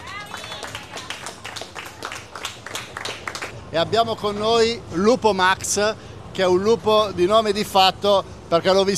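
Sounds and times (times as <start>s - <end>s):
audience applause: 0.0s - 3.6s
speech: 3.7s - 8.9s.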